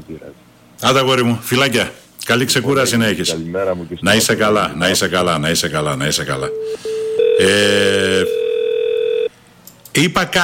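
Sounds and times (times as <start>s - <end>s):
speech: 0.1s - 8.4s, 10.0s - 10.4s
steady mid-pitched telephone call tone: 6.5s - 9.3s.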